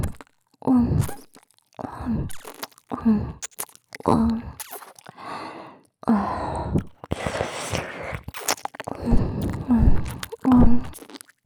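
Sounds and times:
speech: 0.7s - 1.2s, 2.1s - 4.6s
crunchy ASMR biting and chewing on soft ears: 1.0s - 5.2s, 6.8s - 11.4s.

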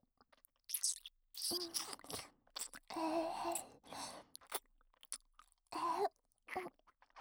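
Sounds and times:
fellatio sounds: 0.6s - 7.1s
ear licking: 0.7s - 5.5s, 6.5s - 7.1s.

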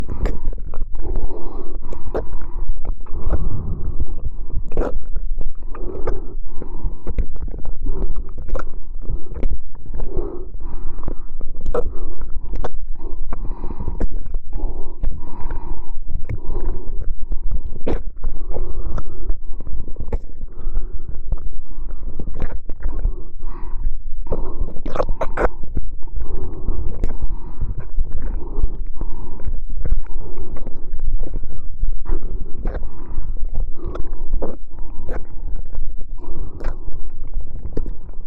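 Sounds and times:
ASMR ear licking in the right ear: 0.0s - 38.2s.

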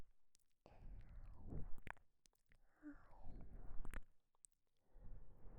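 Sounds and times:
breathing with voice leaking in the left ear on a KU100: 0.7s - 1.5s, 2.7s - 3.9s.

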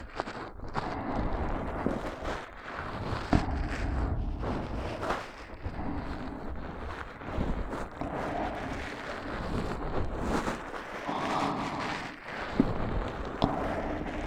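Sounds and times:
ASMR ear massage sounds on the right ear: 0.8s - 14.2s.

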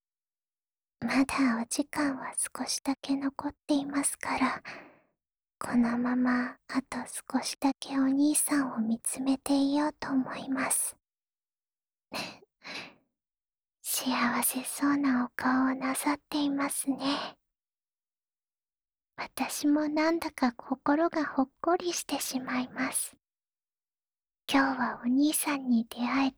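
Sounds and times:
ASMR sleep voice: 1.0s - 4.6s, 5.6s - 10.9s, 13.9s - 17.4s, 19.2s - 23.2s, 24.5s - 26.3s.

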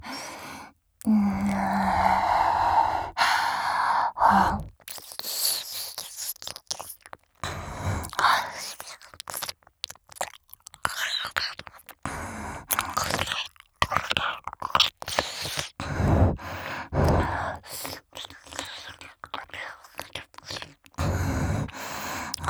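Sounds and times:
ear licking and ear sucking: 1.0s - 22.4s.

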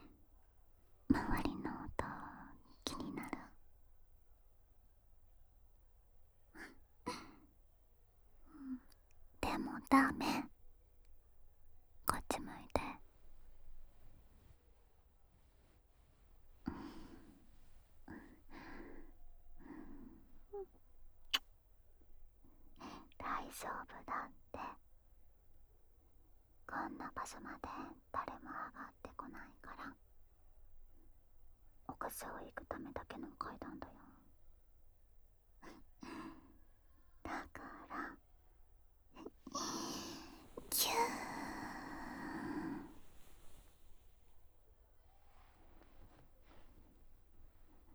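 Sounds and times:
voiceless whispering on stairs: 1.1s - 3.7s, 6.5s - 7.4s, 8.5s - 10.6s, 12.0s - 13.1s, 16.7s - 17.4s, 18.1s - 21.5s, 22.7s - 24.9s, 26.7s - 30.1s, 31.9s - 34.3s, 35.6s - 36.2s, 37.2s - 38.3s, 39.2s - 43.8s.

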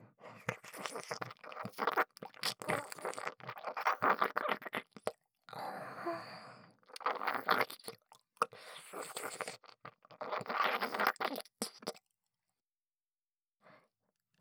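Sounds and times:
gentle ear licking on left ear: 0.5s - 5.2s, 6.9s - 8.2s, 9.0s - 12.0s.

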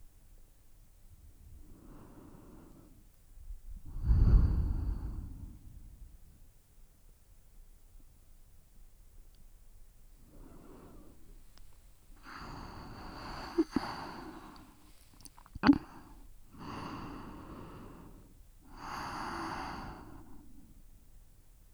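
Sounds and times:
sleeping breath: 3.9s - 6.0s, 10.3s - 20.8s.

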